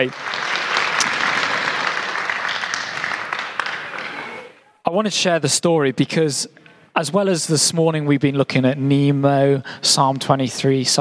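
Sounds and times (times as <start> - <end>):
speech: 0.0 - 0.3, 4.9 - 10.9
audience applause: 0.0 - 4.6.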